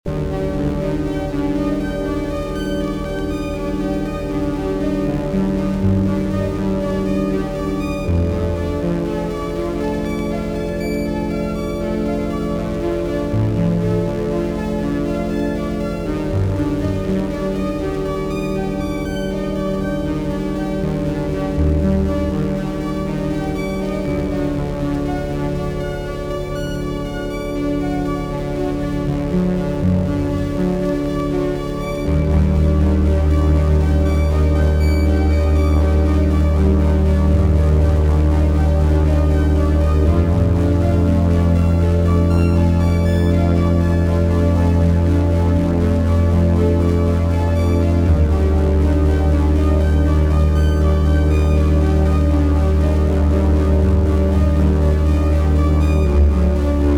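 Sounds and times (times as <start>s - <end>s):
1980s style downtempo music loop: 0.1s - 56.9s.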